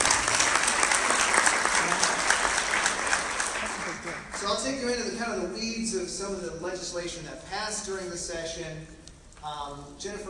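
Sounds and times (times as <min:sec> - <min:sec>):
room full of people clapping: 0:00.0 - 0:04.7
speech: 0:04.5 - 0:10.2.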